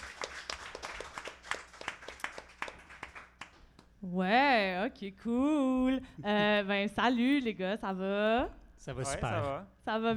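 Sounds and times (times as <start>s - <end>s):
small group applauding for a team member: 0.0s - 3.9s
speech: 4.0s - 10.1s.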